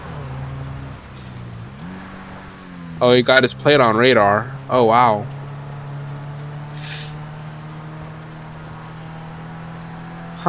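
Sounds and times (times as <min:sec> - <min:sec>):
video game buggy engines racing on dirt: 0:00.0 - 0:10.4
speech: 0:03.0 - 0:05.4.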